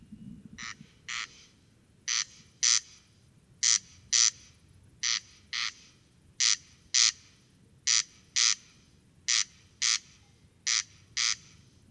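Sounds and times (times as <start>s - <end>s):
corn crake calling with rasping notes: 0.6s - 1.5s, 2.1s - 3.0s, 3.6s - 7.3s, 7.9s - 11.6s.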